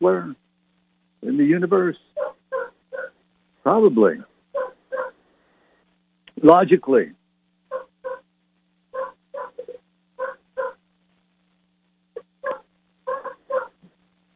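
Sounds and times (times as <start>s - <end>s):
speech: 0.0s - 0.4s, 1.2s - 2.3s, 3.6s - 4.3s, 6.4s - 7.2s
dog barking: 2.2s - 3.2s, 4.5s - 5.2s, 7.7s - 8.2s, 9.0s - 10.8s, 12.2s - 13.8s.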